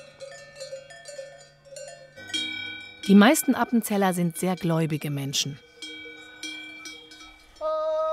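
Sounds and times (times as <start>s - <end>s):
cowbells ringing on alpine pasture: 0.0s - 8.0s
speech: 3.1s - 5.7s.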